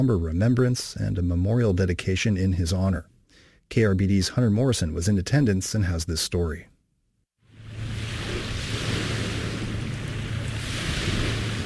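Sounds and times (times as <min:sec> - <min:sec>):
speech: 0:00.0 - 0:03.1, 0:03.7 - 0:06.7
distant ocean waves crashing on shore at Refuge Cove State Recreation Area: 0:07.5 - 0:11.6.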